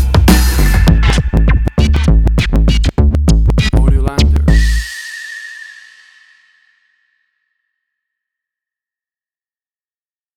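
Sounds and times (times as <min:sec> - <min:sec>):
1990s hip hop music: 0:00.0 - 0:05.0.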